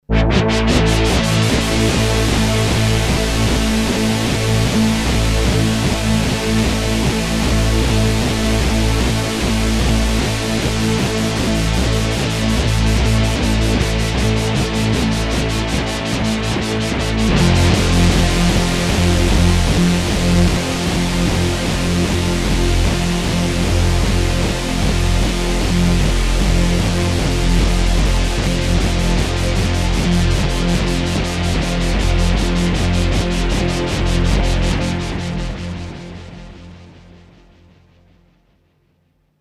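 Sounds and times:
unison synthesizer with LFO: 0:00.1 - 0:37.4.

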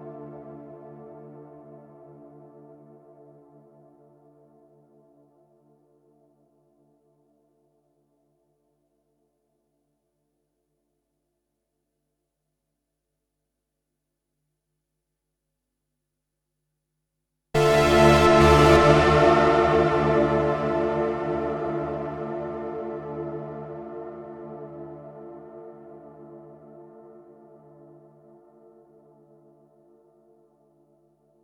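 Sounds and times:
ambient chorus effect: 0:17.6 - 0:25.3.

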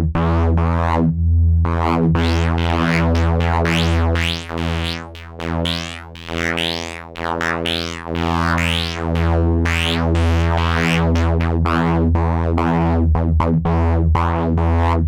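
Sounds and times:
serial filtered synth sound: 0:00.1 - 0:07.5, 0:08.2 - 0:15.0.

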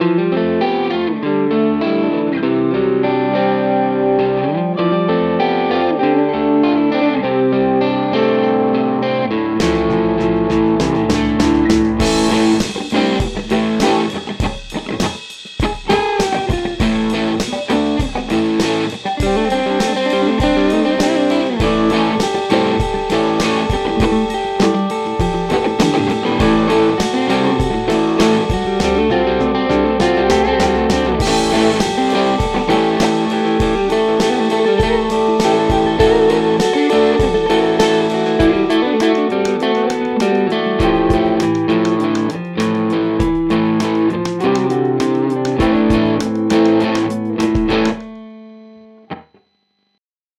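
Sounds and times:
electric guitar through Walrus Audio ACS1 London gain pedal: 0:00.0 - 0:49.2.

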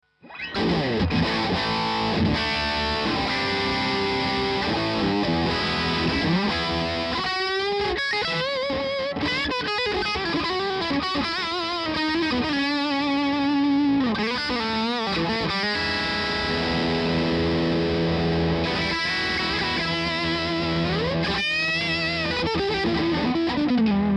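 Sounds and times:
electric guitar bridge pickup gain: 0:00.2 - 0:24.1.

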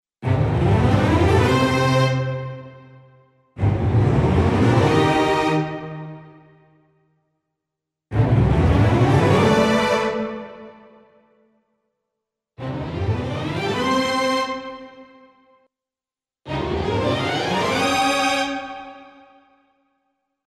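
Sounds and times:
full string ensemble playing two octaves up: 0:00.2 - 0:02.8, 0:03.6 - 0:06.3, 0:08.1 - 0:10.7, 0:12.6 - 0:15.0, 0:16.5 - 0:19.0.

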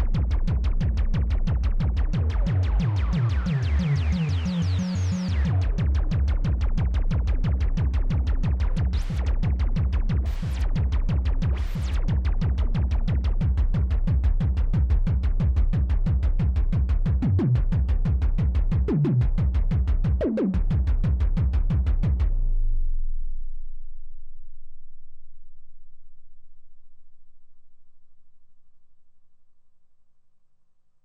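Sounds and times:
music beat: 0:00.0 - 0:22.3.

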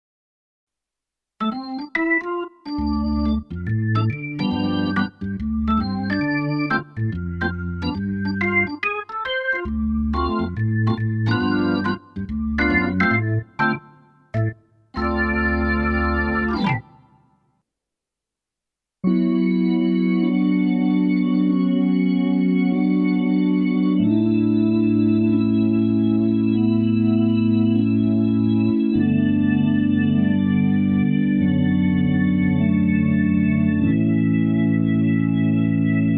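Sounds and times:
Roland BK3 organ: 0:01.4 - 0:17.2, 0:19.0 - 0:36.1.

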